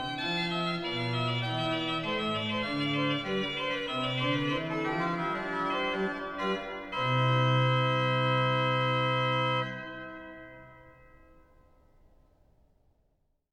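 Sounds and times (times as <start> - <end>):
organ voluntary with cornet stop: 0.0 - 10.8.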